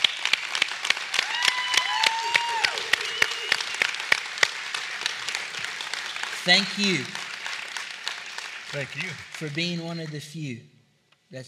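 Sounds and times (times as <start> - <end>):
audience applause: 0.0 - 10.4
speech: 6.4 - 7.2, 8.7 - 10.7.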